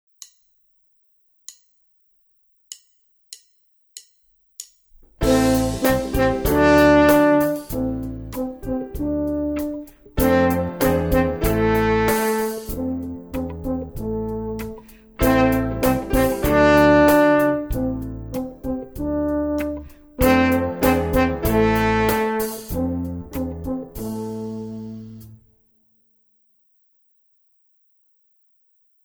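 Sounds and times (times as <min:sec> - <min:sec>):
piano: 0:05.2 - 0:25.5.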